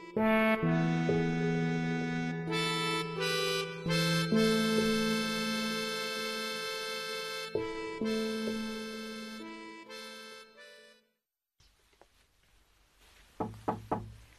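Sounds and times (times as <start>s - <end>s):
soft piano-like music: 0.0s - 9.9s
knocks on a door: 13.4s - 14.2s.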